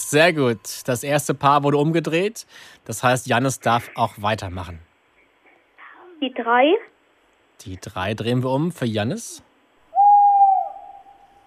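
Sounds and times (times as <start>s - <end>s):
speech: 0.1s - 4.9s, 6.2s - 6.9s, 7.6s - 9.5s
tawny owl hooting: 9.9s - 11.4s.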